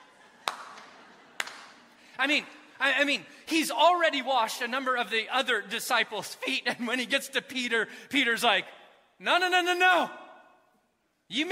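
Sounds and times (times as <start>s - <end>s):
slow clap: 0.2s - 2.0s
speech: 2.2s - 10.2s, 11.3s - 11.5s.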